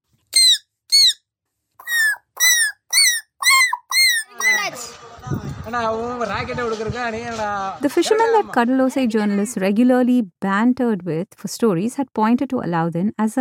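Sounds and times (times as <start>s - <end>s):
boy imitating bird calls: 0.4s - 1.2s, 1.8s - 4.8s
speech: 4.7s - 13.3s.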